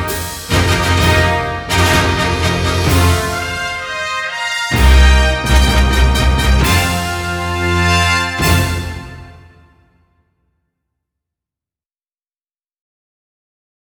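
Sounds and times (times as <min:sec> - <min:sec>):
fanfare at Honolulu Racecourse: 0:00.0 - 0:10.1.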